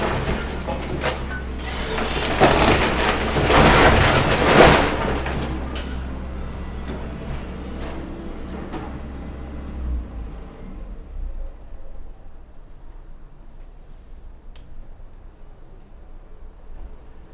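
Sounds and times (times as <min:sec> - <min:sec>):
house being demolished: 0:00.0 - 0:10.7.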